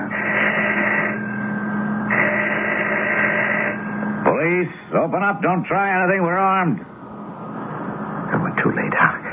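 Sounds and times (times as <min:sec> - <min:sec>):
doorbell ringing: 0:00.0 - 0:04.4
speech: 0:04.6 - 0:06.9, 0:08.6 - 0:09.2.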